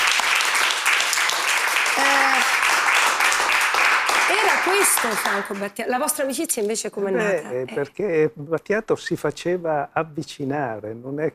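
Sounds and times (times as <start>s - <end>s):
audience applause: 0.0s - 5.7s
speech: 4.6s - 11.3s.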